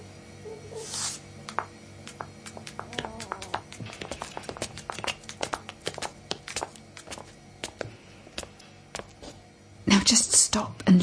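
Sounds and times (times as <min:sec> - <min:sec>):
footsteps walking upstairs: 0:01.5 - 0:09.5
speech: 0:10.1 - 0:11.0.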